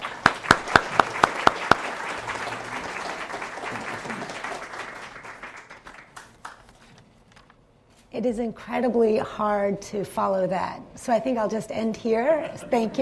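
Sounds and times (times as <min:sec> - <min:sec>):
audience applause welcoming a speaker: 0:00.0 - 0:06.7
speech: 0:08.2 - 0:12.9.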